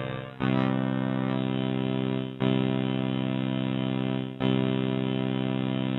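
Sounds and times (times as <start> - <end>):
Spectraphon synth chord: 0.0 - 5.9.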